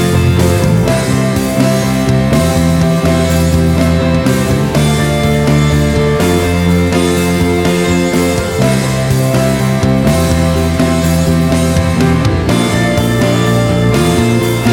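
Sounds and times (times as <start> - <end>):
energetic uplifting rock opener music: 0.0 - 14.7.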